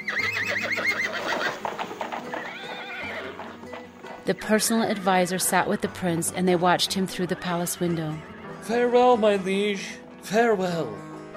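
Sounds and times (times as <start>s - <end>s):
horse hoofbeats clopping: 0.0s - 8.1s
horse neighing: 0.0s - 8.7s
speech: 4.3s - 11.1s.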